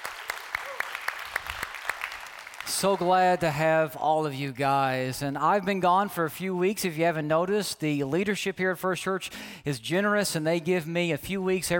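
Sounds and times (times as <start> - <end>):
church congregation clapping to welcome online worshippers: 0.0 - 3.8
speech: 2.8 - 11.7.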